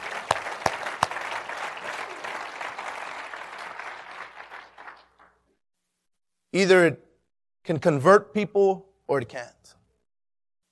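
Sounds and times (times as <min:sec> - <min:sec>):
audience clapping: 0:00.0 - 0:05.6
speech: 0:06.6 - 0:07.0, 0:07.6 - 0:09.8.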